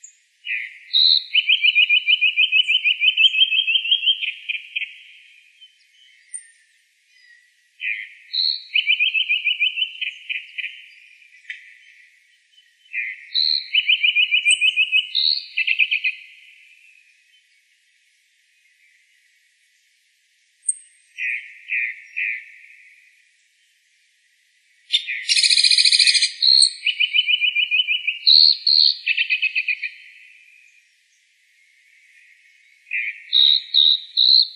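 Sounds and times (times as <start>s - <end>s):
calandra lark voice: 0.0s - 6.6s, 7.2s - 16.5s, 20.6s - 23.0s, 24.9s - 30.4s, 32.0s - 34.5s.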